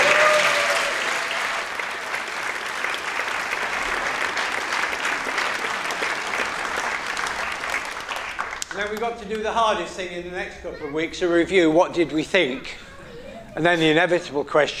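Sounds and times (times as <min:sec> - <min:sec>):
audience cheering and applauding: 0:00.0 - 0:09.5
speech: 0:08.9 - 0:12.8, 0:13.6 - 0:14.7.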